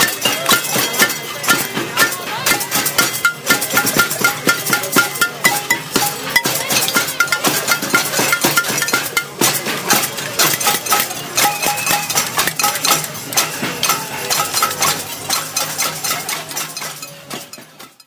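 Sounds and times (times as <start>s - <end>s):
pots being banged in Parc Jeanne-Mance: 0.0s - 18.0s.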